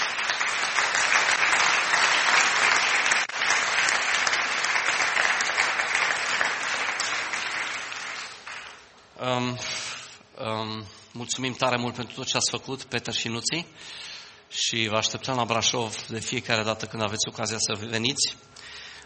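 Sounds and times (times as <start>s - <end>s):
audience applauding: 0.0s - 9.0s
speech: 9.3s - 9.8s, 10.4s - 19.0s.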